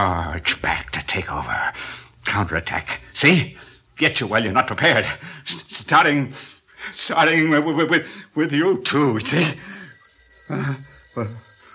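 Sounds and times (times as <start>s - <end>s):
speech: 0.0s - 9.8s, 10.5s - 11.5s
telephone ringing: 9.3s - 11.7s.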